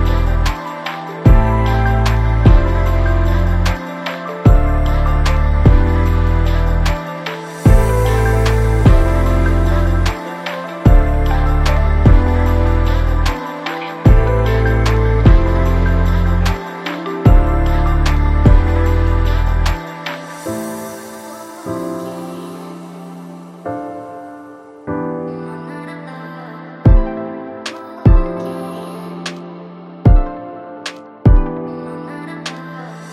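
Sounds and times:
lo-fi chill beat: 0:00.0 - 0:20.6, 0:30.1 - 0:31.7.

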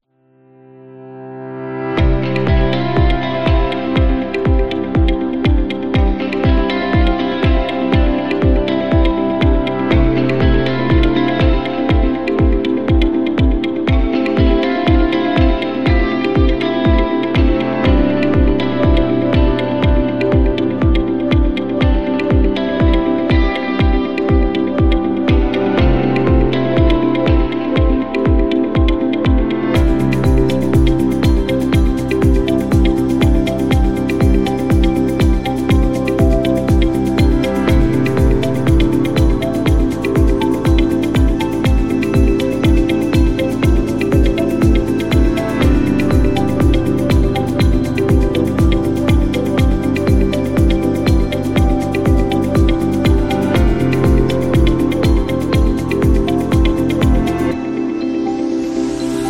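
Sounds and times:
corporate music: 0:00.8 - 0:59.2.

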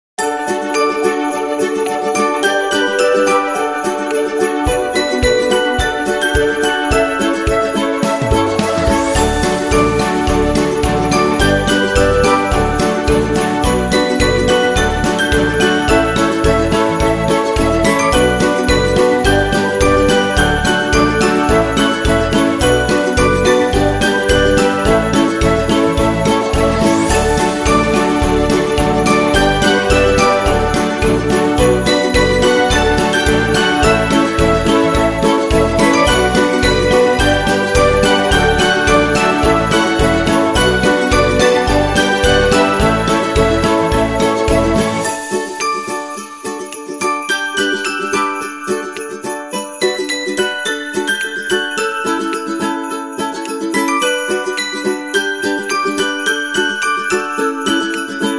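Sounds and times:
christmas song: 0:00.2 - 0:58.3.

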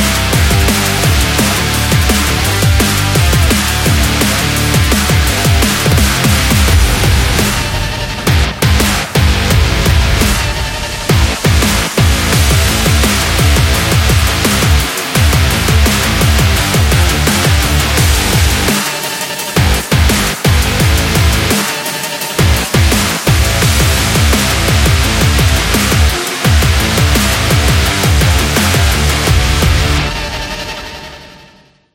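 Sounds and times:
drum and bass rock music: 0:00.0 - 0:31.2.

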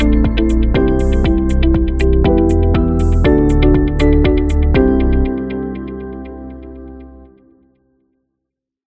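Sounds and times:
calm beat: 0:00.0 - 0:06.4.

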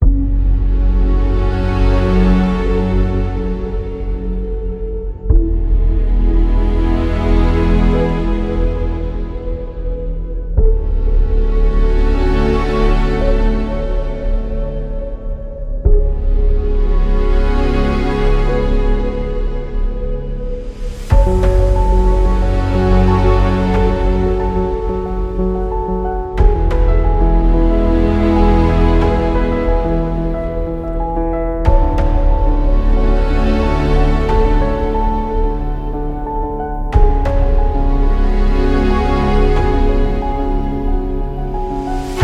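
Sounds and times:
cinematic ambient music: 0:00.0 - 0:42.2.

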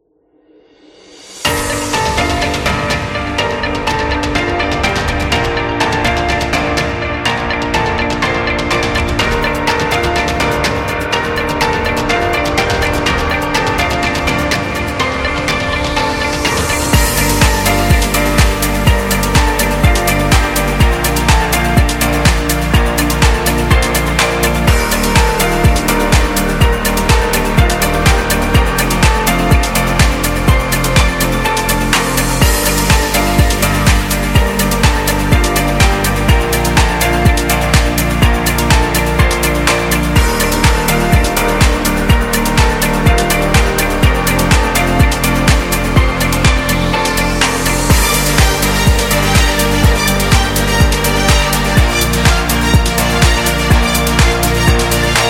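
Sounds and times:
dynamic corporate music: 0:00.8 - 0:55.2.

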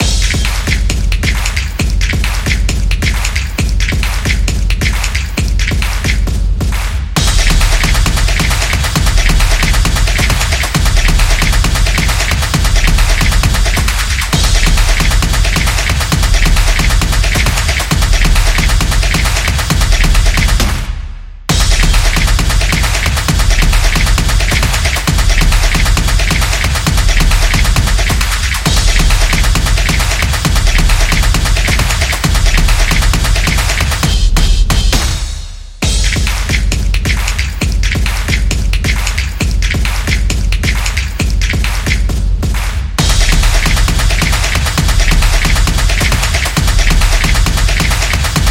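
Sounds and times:
sport vlog music: 0:00.0 - 0:20.9, 0:21.5 - 0:48.4.

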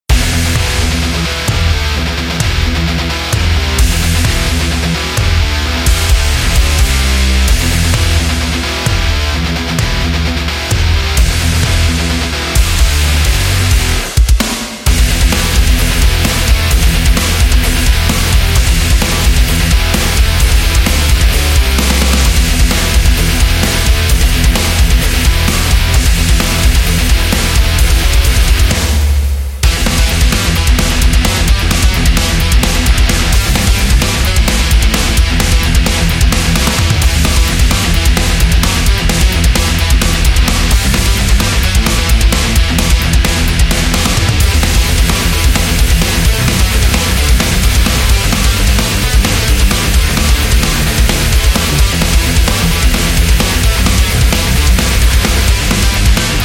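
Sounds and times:
old heavy metal music: 0:00.0 - 0:56.4.

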